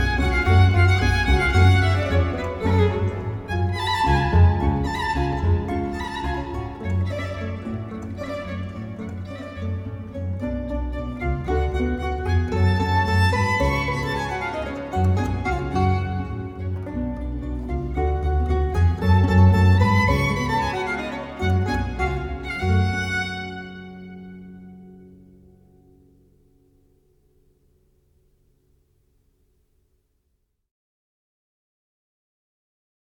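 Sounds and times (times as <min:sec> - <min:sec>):
baroque trio in G minor, Allegro: 0:00.0 - 0:24.0.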